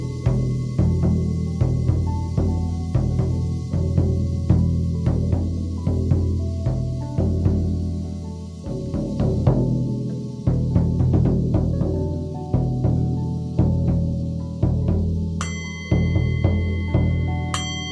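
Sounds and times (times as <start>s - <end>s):
buffalo drum beating in a steady rhythm: 0.0s - 17.9s
ringing Tibetan singing bowl and dragon rings bells: 15.4s - 17.9s.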